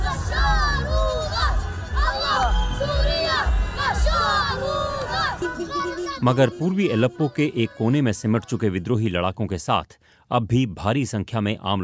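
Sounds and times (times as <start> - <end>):
children in a crowd in Aleppo, Syria chanting slogans and cheering: 0.0 - 8.7
crowd noise: 0.0 - 8.9
speech: 6.2 - 11.8.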